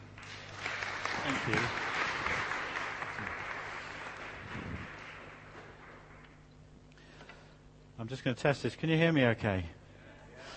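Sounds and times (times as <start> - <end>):
audience applause welcoming a speaker: 0.0 - 6.3
speech: 1.3 - 1.8, 8.1 - 9.8.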